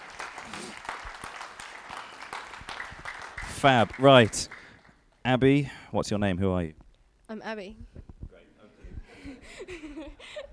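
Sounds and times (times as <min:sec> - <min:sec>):
applause: 0:00.0 - 0:05.0
speech: 0:03.6 - 0:04.5, 0:05.3 - 0:07.9.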